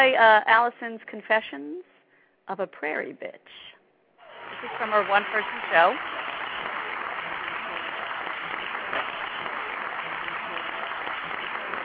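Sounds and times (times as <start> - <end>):
speech: 0.0 - 1.9, 2.5 - 3.7, 4.5 - 6.2
audience applause in recorded show: 4.2 - 11.8.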